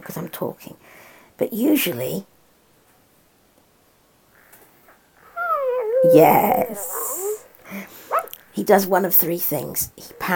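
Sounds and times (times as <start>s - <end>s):
speech: 0.1s - 2.3s, 6.0s - 7.0s, 8.6s - 10.3s
dog doing a big yawn: 5.2s - 7.5s, 8.1s - 8.4s.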